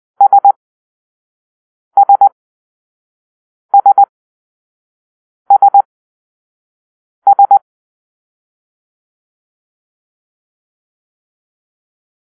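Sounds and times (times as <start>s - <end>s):
morse code for letter S: 0.2s - 0.6s, 2.0s - 2.3s, 3.8s - 4.1s, 5.5s - 5.9s, 7.3s - 7.6s.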